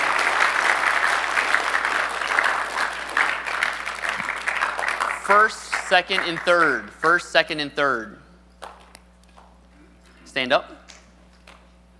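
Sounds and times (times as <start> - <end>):
crowd applause: 0.0 - 6.8
speech: 5.4 - 8.2, 10.3 - 10.8.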